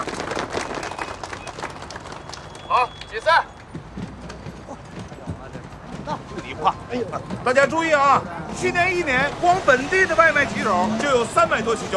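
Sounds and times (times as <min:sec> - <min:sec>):
applause: 0:00.0 - 0:03.2
speech: 0:02.8 - 0:03.5, 0:06.6 - 0:11.9.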